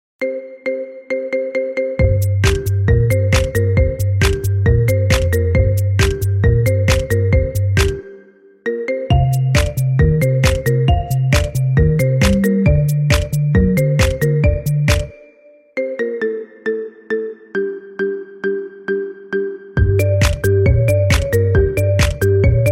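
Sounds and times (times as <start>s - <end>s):
marimba: 0.2s - 22.7s.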